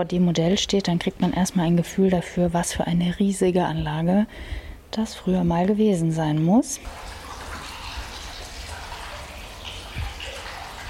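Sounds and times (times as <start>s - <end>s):
speech: 0.0s - 7.1s
water bubbling from a fountain: 6.8s - 10.8s.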